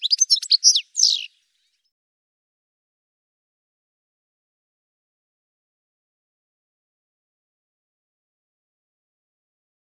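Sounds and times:
bird calls of high rapid chirps and twittering notes: 0.0s - 1.8s.

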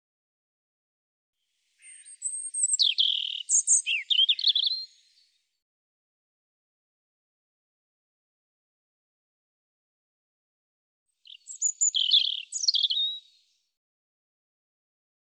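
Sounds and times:
European robin singing: 1.8s - 5.3s, 11.2s - 13.6s.

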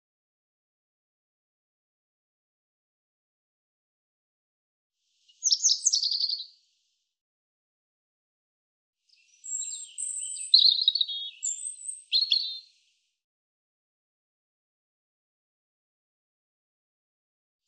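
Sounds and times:
European robin song: 5.2s - 6.8s, 9.0s - 13.2s.

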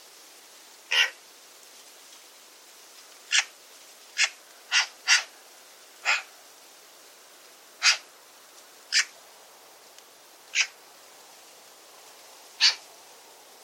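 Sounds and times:
bird giving sharp high calls: 0.9s - 1.2s, 3.3s - 3.5s, 4.2s - 5.3s, 6.0s - 6.3s, 7.8s - 8.0s, 8.9s - 9.1s, 10.5s - 10.8s, 12.6s - 12.8s.

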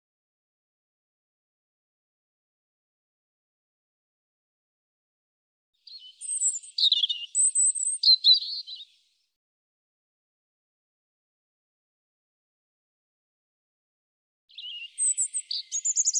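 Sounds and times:
European robin singing: 5.8s - 9.1s, 14.5s - 16.1s.

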